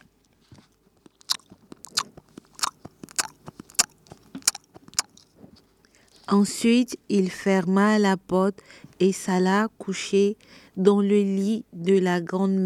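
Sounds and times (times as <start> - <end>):
wolf devouring, chewing and crunching: 0.0 - 6.3
speech: 6.3 - 12.6.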